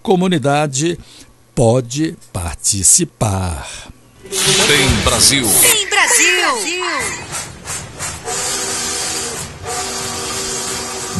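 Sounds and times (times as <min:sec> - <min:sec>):
speech: 0:00.0 - 0:07.4
train noise: 0:04.2 - 0:11.1.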